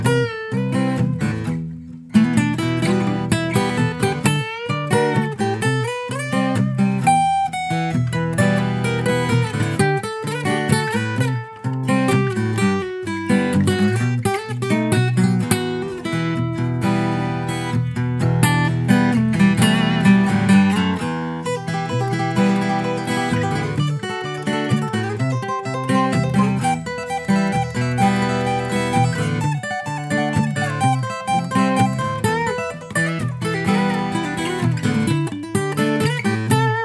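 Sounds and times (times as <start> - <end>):
solo acoustic guitar cover: 0.0 - 36.8.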